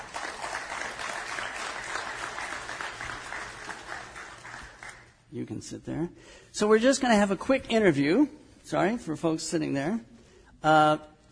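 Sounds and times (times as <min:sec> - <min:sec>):
round of applause from audience: 0:00.0 - 0:05.1
speech: 0:05.3 - 0:11.3.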